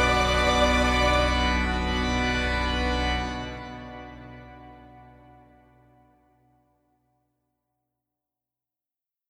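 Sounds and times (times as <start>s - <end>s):
dramatic evolving sound: 0.0s - 5.8s.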